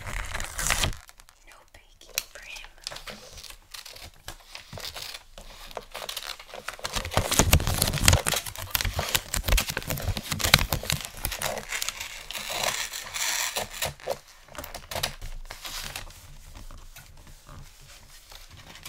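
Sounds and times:
paper ripping: 0.0s - 1.3s, 3.3s - 14.2s
Christmas gift wrapping paper crinkling: 0.0s - 18.8s.

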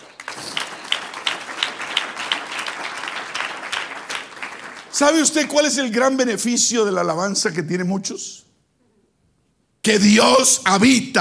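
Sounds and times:
audience applause: 0.0s - 5.4s
speech: 5.0s - 8.4s, 9.8s - 11.1s.

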